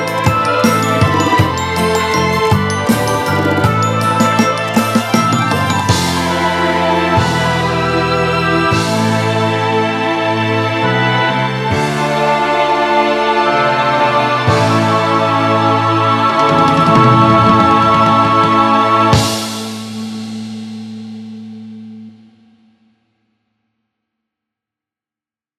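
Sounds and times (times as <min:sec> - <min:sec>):
orchestra: 0:00.0 - 0:20.4.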